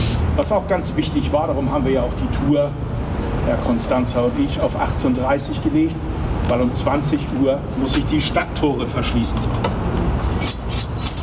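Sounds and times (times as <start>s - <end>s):
speech: 0.4s - 10.6s
keys jangling: 9.3s - 11.2s.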